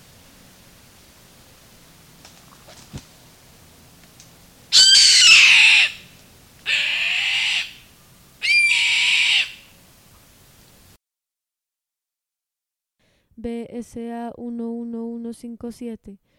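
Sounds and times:
bird giving harsh hissing screeches: 4.7 - 9.7
speech: 13.5 - 16.3.

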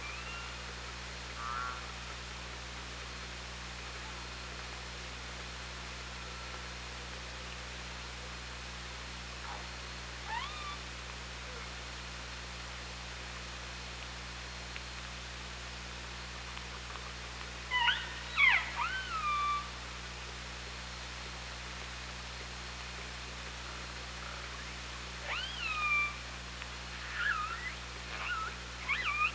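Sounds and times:
killer whale calls: 0.0 - 0.6, 1.4 - 2.0, 10.2 - 10.8, 17.7 - 19.7, 25.2 - 26.2, 26.9 - 29.3
low hum: 0.0 - 29.3
steady hiss: 0.0 - 29.3.

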